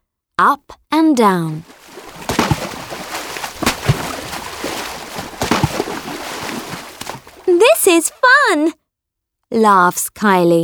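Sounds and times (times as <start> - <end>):
speech: 0.4 - 1.8, 7.6 - 8.8, 9.5 - 10.6
dolphins slapping tails on water surface: 1.6 - 8.0.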